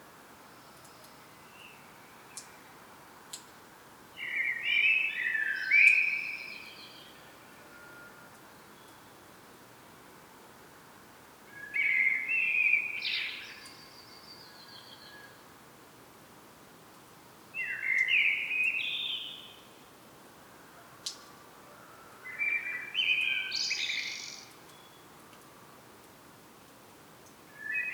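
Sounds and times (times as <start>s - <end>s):
common blackbird singing: 4.2s - 7.2s, 11.6s - 15.3s, 17.6s - 19.6s, 22.3s - 24.8s, 27.6s - 27.9s
faint clicks: 21.0s - 21.4s.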